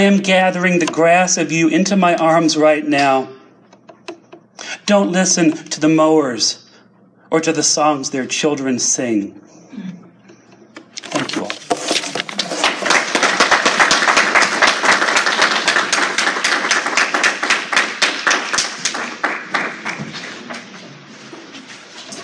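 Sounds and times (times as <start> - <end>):
speech: 0.0 - 3.4, 4.9 - 6.6, 7.3 - 10.0
audience applause: 12.3 - 20.6.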